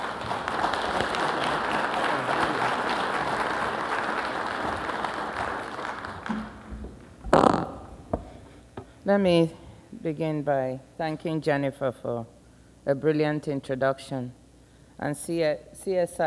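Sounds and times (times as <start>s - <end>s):
audience applause welcoming a government minister at a policy forum: 0.0s - 6.7s
speech: 9.1s - 14.4s, 15.0s - 16.2s.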